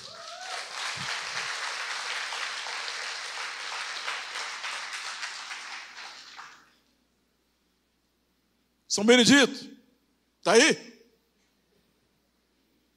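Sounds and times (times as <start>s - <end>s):
audience applauding: 0.0s - 6.8s
speech: 9.0s - 9.7s, 10.4s - 10.9s.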